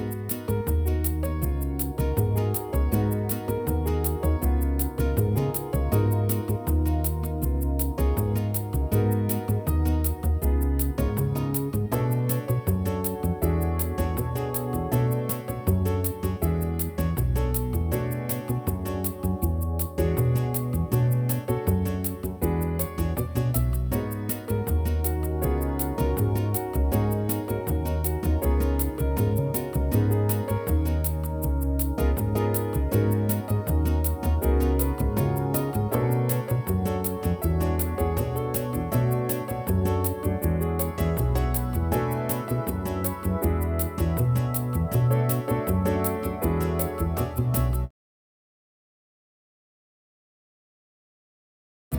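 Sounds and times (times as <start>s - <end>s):
G-sharp to B Dorian mode melody: 0.0s - 47.9s.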